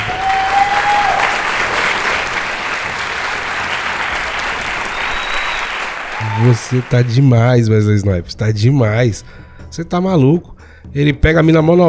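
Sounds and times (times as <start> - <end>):
crowd clapping: 0.0 - 7.5
whistle-like tone: 4.9 - 6.4
speech: 6.4 - 11.8.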